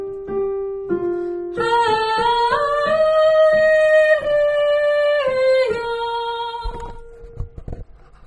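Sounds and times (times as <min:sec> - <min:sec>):
soprano singing: 0:01.4 - 0:07.4.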